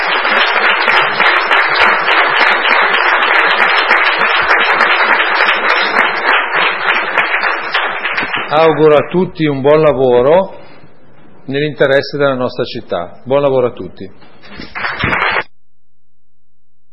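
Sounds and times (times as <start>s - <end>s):
audience applause: 0.0s - 9.0s, 14.5s - 15.4s
speech: 8.5s - 10.6s, 11.5s - 14.8s.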